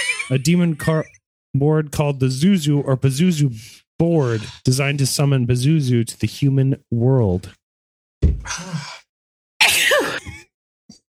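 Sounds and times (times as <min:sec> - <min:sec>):
speech: 0:00.3 - 0:07.6
person sneezing: 0:09.6 - 0:10.3.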